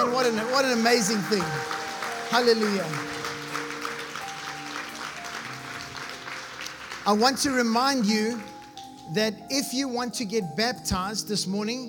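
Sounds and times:
speech: 0.0s - 3.2s, 7.1s - 8.5s, 9.1s - 11.8s
audience applause: 0.0s - 8.9s
faint sustained musical tones: 0.0s - 11.8s.

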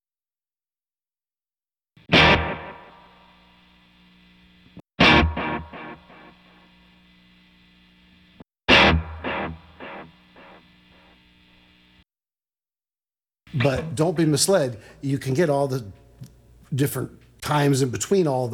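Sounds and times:
strummed distorted guitar chord with tape echo repeats: 2.1s - 3.7s, 5.0s - 6.8s, 8.7s - 11.1s
speech: 13.5s - 18.5s.

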